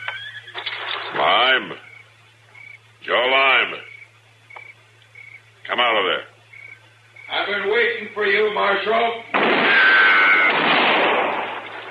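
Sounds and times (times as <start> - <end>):
speech: 1.5 - 1.9, 3.1 - 3.9, 5.7 - 6.3, 7.3 - 9.6
gunshot fired at a marshal in a western shootout: 9.3 - 11.8.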